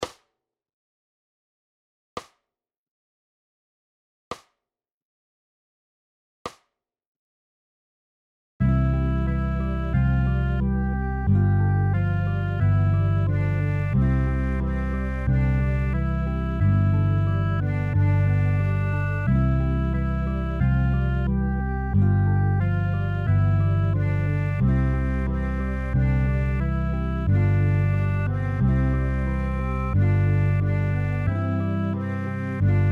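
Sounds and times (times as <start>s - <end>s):
anthem playalong in C: 8.6s - 32.9s.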